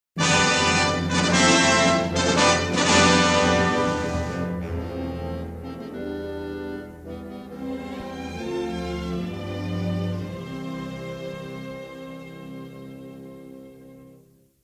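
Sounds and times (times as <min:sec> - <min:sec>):
royal fanfare: 0:00.2 - 0:11.0.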